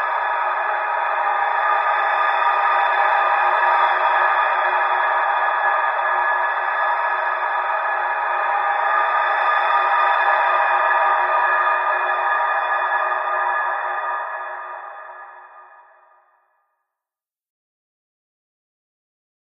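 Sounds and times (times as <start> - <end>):
cold tunnel ambience: 0.0 - 16.3.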